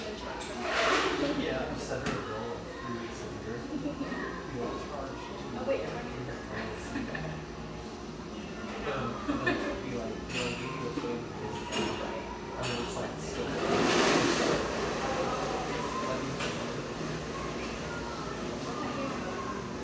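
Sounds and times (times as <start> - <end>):
coffeehouse chatter in Hazelwood, Portland, Oregon: 0.0 - 19.8
laughter: 6.6 - 7.5, 9.0 - 10.1.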